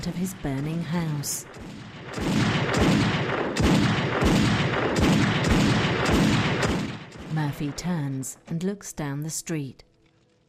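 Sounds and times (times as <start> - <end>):
speech: 0.0 - 4.4, 7.4 - 9.9
machine gun fire in a drama: 1.5 - 7.4.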